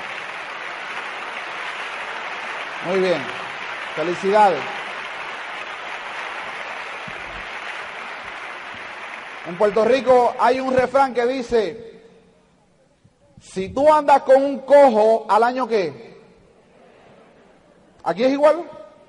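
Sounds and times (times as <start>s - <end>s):
audience applause: 0.0s - 10.8s
speech: 2.8s - 4.8s, 9.5s - 11.9s, 13.5s - 16.1s, 18.0s - 18.8s.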